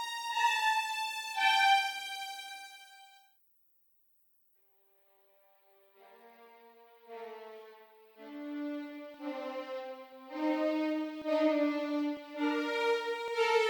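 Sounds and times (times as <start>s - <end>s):
first violins playing legato close: 0.0s - 2.8s, 8.2s - 13.6s.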